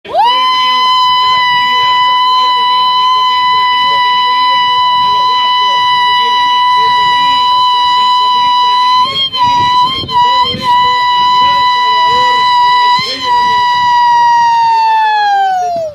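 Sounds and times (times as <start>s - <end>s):
sapucai shout: 0.1s - 15.9s.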